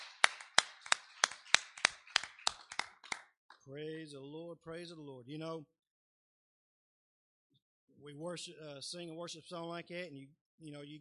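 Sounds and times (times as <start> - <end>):
audience hand clapping in praise: 0.0 - 3.6
speech: 3.7 - 5.8, 8.0 - 10.9.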